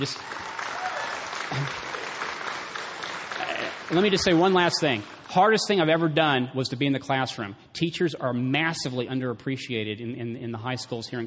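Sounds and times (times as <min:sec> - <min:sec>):
speech: 0:00.0 - 0:00.5, 0:01.5 - 0:02.0, 0:03.6 - 0:11.2
audience applause: 0:00.0 - 0:05.8.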